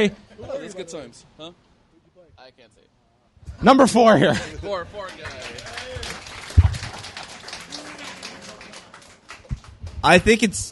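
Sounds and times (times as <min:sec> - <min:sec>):
speech: 0:00.0 - 0:01.7, 0:02.4 - 0:06.3, 0:10.0 - 0:10.7
audience applause: 0:05.0 - 0:09.8.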